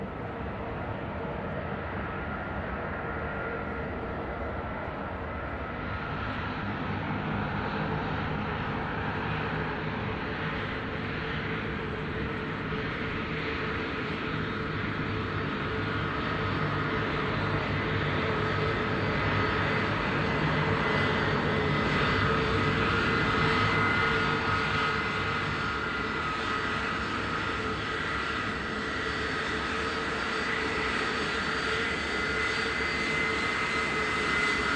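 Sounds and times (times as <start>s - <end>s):
aircraft rolling on the ground from hangars: 0.0s - 34.7s.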